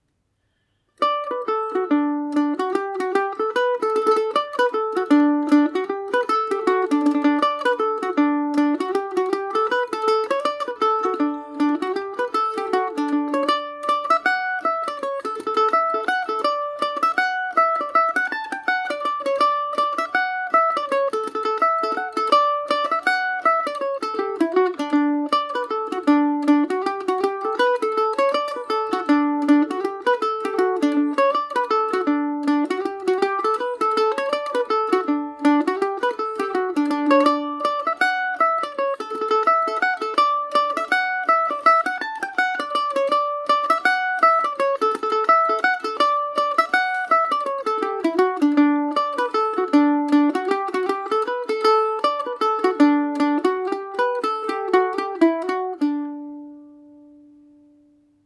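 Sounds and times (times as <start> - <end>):
Irish mandolin playing swing in D major: 1.0 - 58.2.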